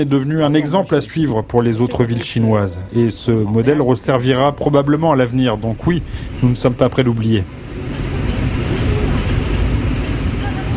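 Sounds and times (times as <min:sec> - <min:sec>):
speech: 0:00.0 - 0:07.6
air conditioner fans blowing in the streets of Wuhan at nightfall: 0:00.0 - 0:10.7.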